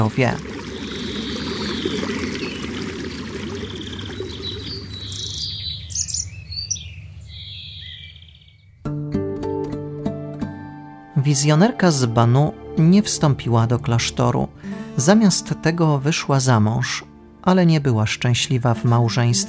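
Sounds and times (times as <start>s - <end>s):
speech: 0.0s - 0.5s, 11.3s - 19.4s
water flowing in a stream in a large landscaped shrine park: 0.0s - 6.3s
bird chirps: 0.6s - 8.9s
tonal music: 8.9s - 19.3s.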